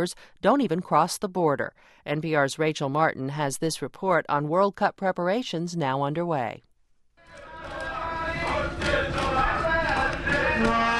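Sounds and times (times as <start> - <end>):
speech: 0.0 - 6.7
soccer fans singing and chanting: 7.2 - 10.9.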